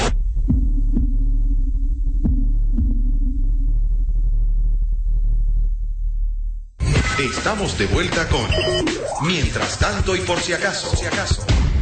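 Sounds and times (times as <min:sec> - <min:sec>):
deep throbbing heartbeat sound effect: 0:00.1 - 0:06.7
speech: 0:07.2 - 0:11.6.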